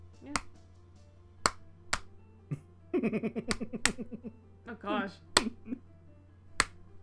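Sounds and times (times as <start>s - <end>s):
offbeat hand claps mimicking someone clapping with no sense of timing: 0.2s - 0.6s, 1.4s - 2.2s, 3.4s - 4.2s, 5.3s - 5.8s, 6.6s - 6.9s
laughter: 2.5s - 4.4s
speech: 3.0s - 5.6s.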